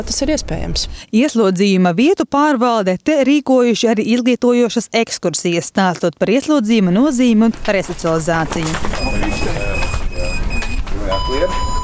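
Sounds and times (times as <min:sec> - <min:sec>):
speech: 0:00.0 - 0:09.6
beeping signals of GPS wristbands: 0:09.0 - 0:11.8.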